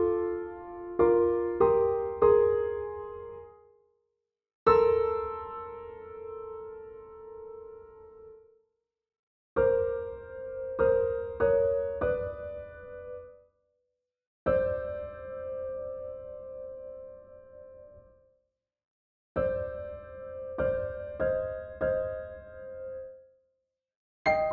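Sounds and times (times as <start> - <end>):
piano sonata: 0.0 - 3.7, 4.7 - 8.4, 9.6 - 13.4, 14.5 - 18.2, 19.4 - 23.2, 24.3 - 24.5.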